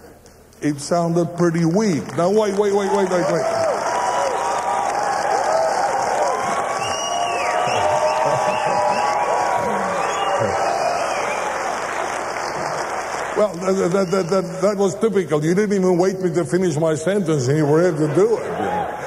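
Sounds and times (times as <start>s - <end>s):
speech: 0.6s - 3.6s, 13.4s - 18.6s
audience applause: 2.1s - 14.4s
laughter: 6.3s - 10.8s, 17.6s - 19.0s.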